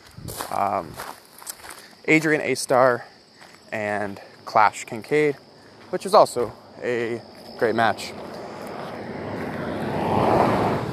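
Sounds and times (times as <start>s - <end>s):
speech: 0.5s - 1.2s, 2.1s - 3.1s, 3.7s - 8.2s
cars driving by: 7.1s - 10.9s.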